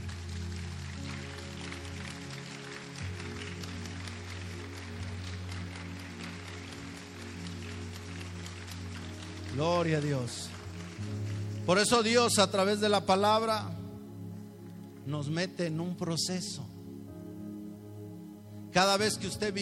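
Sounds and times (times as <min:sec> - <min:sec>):
audience applauding: 0:00.0 - 0:13.5
speech: 0:09.6 - 0:10.5, 0:11.7 - 0:13.8, 0:15.1 - 0:16.7, 0:18.8 - 0:19.5.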